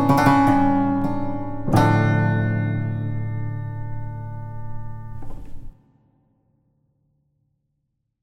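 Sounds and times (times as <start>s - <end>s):
lutheal piano cimbalom prelude: 0.0s - 5.7s.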